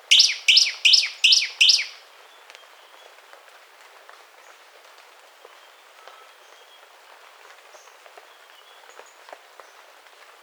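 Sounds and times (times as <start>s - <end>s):
bird chirping: 0.0s - 2.0s.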